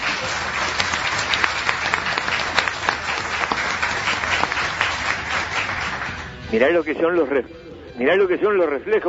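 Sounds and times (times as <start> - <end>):
audience applause: 0.0 - 6.4
speech: 6.5 - 9.0.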